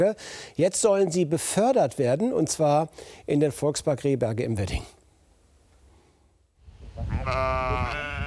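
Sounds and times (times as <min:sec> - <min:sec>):
speech: 0:00.0 - 0:05.0, 0:07.2 - 0:07.9
sheep bleating: 0:07.0 - 0:08.2.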